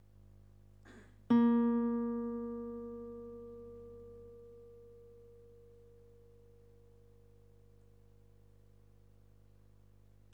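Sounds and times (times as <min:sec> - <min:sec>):
guitar: 0:00.9 - 0:08.3.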